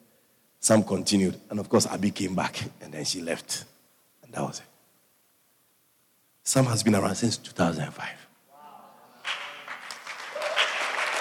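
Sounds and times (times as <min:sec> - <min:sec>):
speech: 0:00.6 - 0:03.7, 0:04.3 - 0:04.7, 0:06.5 - 0:08.2
audience applause: 0:09.2 - 0:11.1.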